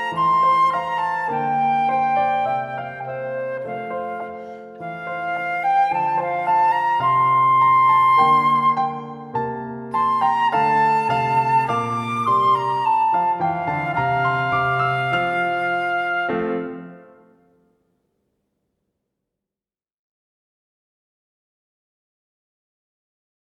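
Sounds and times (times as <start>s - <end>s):
traditional American Shaker melody: 0.0s - 17.3s.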